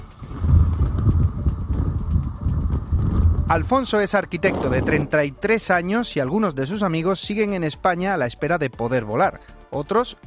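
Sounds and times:
strong gale wind in Haringey: 0.0 - 5.4
speech: 3.5 - 10.2.

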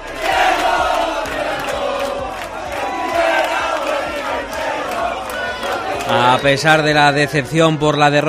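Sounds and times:
Real Oviedo supporters chanting to welcome their football team: 0.0 - 7.8
Real Oviedo supporters clapping: 0.1 - 6.5
speech: 6.1 - 8.2.

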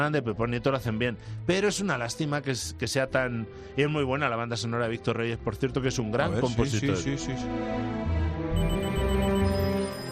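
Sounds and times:
speech: 0.0 - 8.2
telephone ringing sound effect: 8.6 - 10.1.

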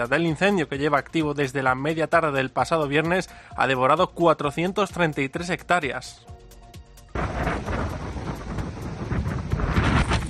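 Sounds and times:
speech: 0.0 - 6.3
strong wind gusts buffeting the microphone near Llançà Girona: 7.2 - 10.2.

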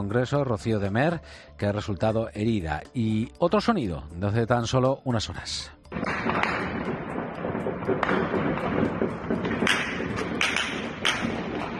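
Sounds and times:
speech: 0.0 - 6.6, 7.9 - 9.8
multiple gunshots: 6.0 - 6.8, 7.8 - 11.7.

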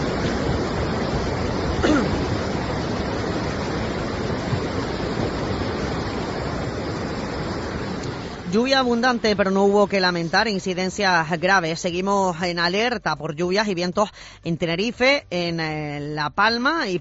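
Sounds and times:
rushing floodwater in a ravine: 0.0 - 13.0
speech: 8.5 - 16.9.

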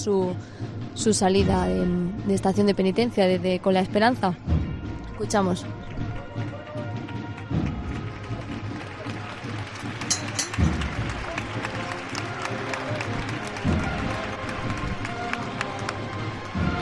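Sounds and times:
speech: 0.0 - 5.9
crowd applause at the end of the Plaza de Santo Domingo: 5.6 - 16.8.

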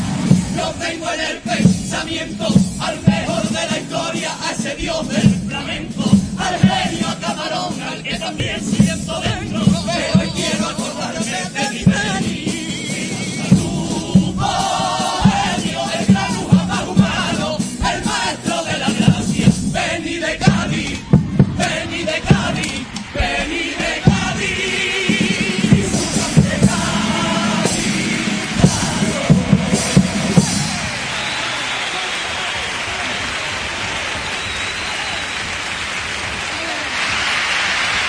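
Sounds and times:
crowd shouting and cheering: 0.0 - 38.0
speech: 0.7 - 7.0
audience standing applause: 21.4 - 26.1, 26.8 - 38.0.

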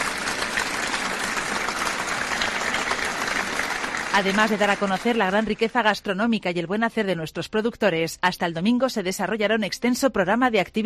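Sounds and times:
audience applause: 0.0 - 5.9
speech: 4.2 - 10.8.

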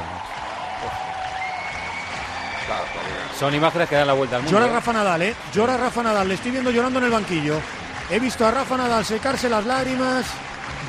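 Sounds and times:
tennis crowd applause, an ovation for Roger Federer: 0.0 - 10.8
speech: 2.7 - 10.8.

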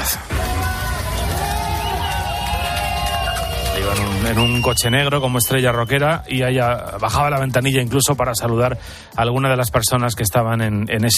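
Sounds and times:
outdoor street crowd cheering: 0.0 - 7.0
outdoor street crowd applauding: 0.0 - 7.9
speech: 4.2 - 11.1.

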